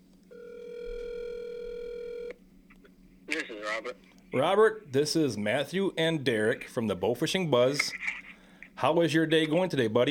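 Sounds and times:
ringback tone from an outgoing phone call: 0:00.3 - 0:02.3
speech: 0:03.4 - 0:08.2, 0:08.8 - 0:10.0.

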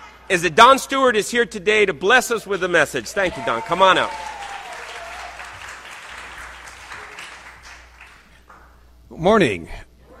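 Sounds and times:
speech: 0:00.3 - 0:04.4, 0:09.2 - 0:09.9
audience clapping: 0:03.1 - 0:08.8.

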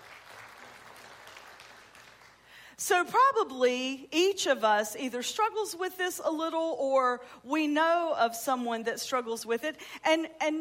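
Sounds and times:
audience clapping: 0:00.0 - 0:02.6
speech: 0:02.8 - 0:10.5.

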